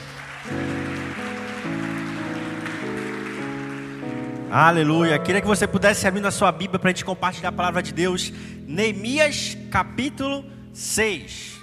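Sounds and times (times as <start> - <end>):
audience applause: 0.0 - 4.5
loud sustained keyboard chords: 0.0 - 11.6
speech: 4.5 - 11.6.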